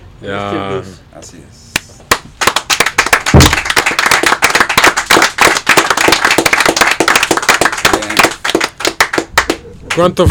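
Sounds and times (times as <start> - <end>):
audience clapping: 2.1 - 10.3.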